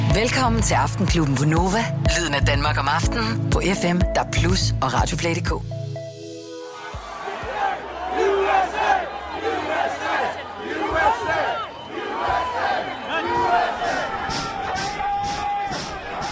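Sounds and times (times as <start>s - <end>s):
speech: 0.2s - 5.8s
crowd of demonstrators storming the US Capitol in Washington shouting: 6.6s - 16.3s.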